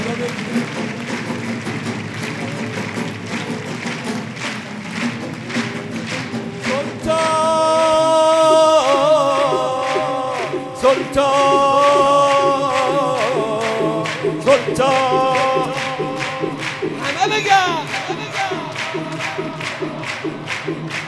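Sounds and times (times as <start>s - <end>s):
music: 0.0s - 21.0s
rhythmic hand clapping at a religious gathering devoted to Imam Reza: 0.0s - 21.0s
voices: 6.2s - 21.0s.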